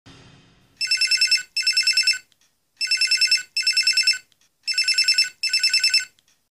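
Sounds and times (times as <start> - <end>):
BlackBerry phone ringtone: 0.8 - 6.2.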